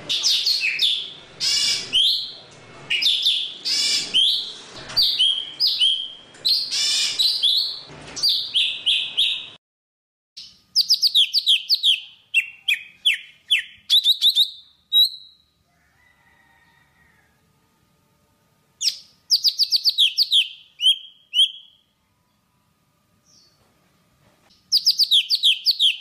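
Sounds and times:
Java sparrow singing: 0.2s - 2.3s, 2.9s - 9.6s, 10.4s - 15.4s, 18.8s - 21.8s, 24.7s - 25.9s.

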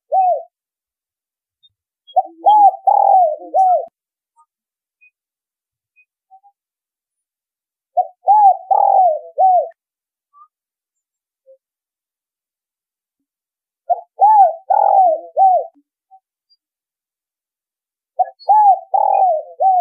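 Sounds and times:
spotted dove cooing: 0.1s - 0.5s, 2.2s - 3.9s, 8.0s - 9.8s, 13.9s - 15.8s, 18.2s - 19.8s.

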